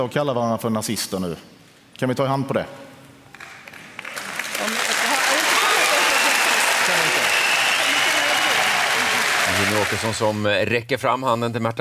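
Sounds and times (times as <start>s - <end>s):
speech: 0.0s - 2.8s, 9.6s - 11.7s
audience applause: 3.4s - 10.4s.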